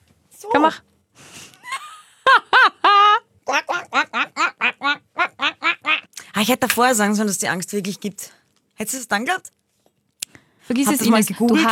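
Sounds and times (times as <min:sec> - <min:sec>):
speech: 0:00.4 - 0:00.9, 0:06.4 - 0:09.6, 0:10.7 - 0:11.7
person imitating a duck: 0:03.5 - 0:06.1.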